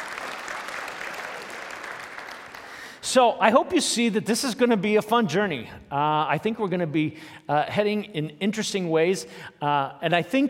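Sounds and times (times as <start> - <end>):
crowd clapping: 0.0 - 3.1
speech: 3.0 - 10.4.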